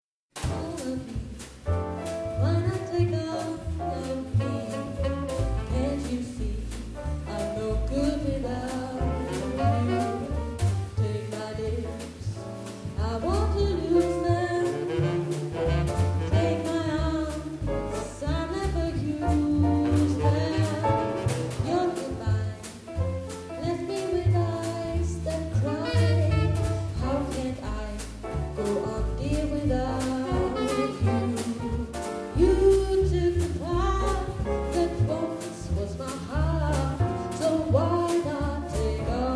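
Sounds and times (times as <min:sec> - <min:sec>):
swing music: 0:00.3 - 0:39.3.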